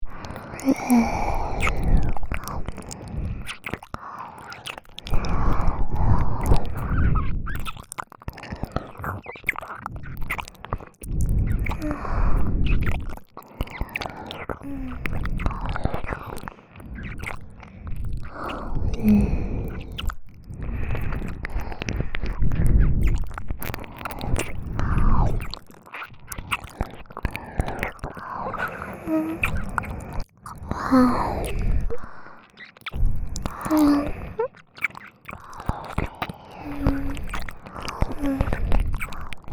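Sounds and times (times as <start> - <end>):
ear licking in both ears: 0.1 - 39.5.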